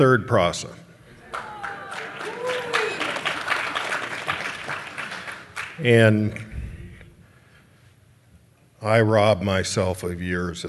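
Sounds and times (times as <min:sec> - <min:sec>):
speech: 0:00.0 - 0:00.8, 0:05.8 - 0:06.5, 0:08.8 - 0:10.6
people cheering and whooping: 0:01.1 - 0:04.4
audience applause: 0:01.2 - 0:05.8.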